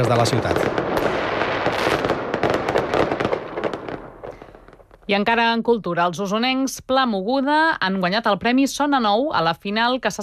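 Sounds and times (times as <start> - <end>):
speech: 0.0 - 2.0, 5.1 - 10.2
fireworks from the castle of fire at Punta del Miracle crackling and banging: 0.0 - 5.6.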